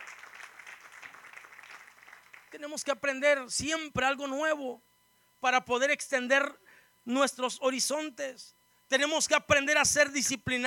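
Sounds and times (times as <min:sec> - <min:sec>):
audience applause: 0:00.0 - 0:02.6
speech: 0:02.5 - 0:10.6.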